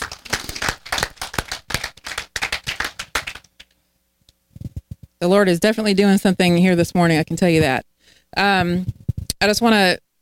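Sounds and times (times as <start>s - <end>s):
audience applause: 0.0s - 3.5s
speech: 5.2s - 10.0s.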